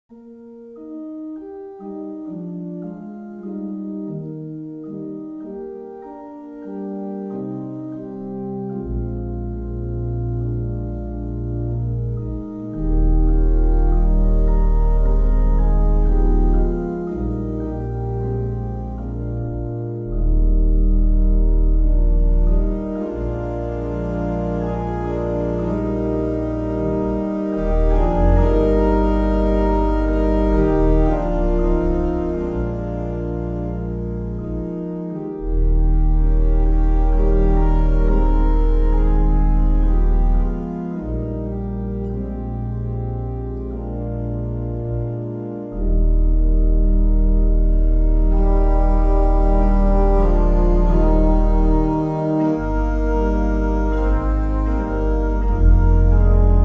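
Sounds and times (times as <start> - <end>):
organ medley: 0.1 - 56.6.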